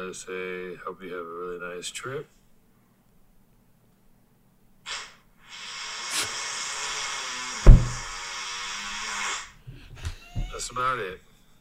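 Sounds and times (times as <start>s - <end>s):
speech: 0.1s - 2.4s, 10.8s - 11.3s
comically loud fart in a played video: 4.9s - 9.6s.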